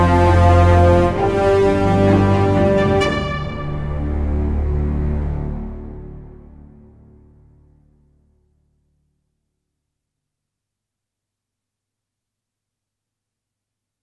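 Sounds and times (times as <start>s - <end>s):
orchestral music: 0.0s - 8.1s.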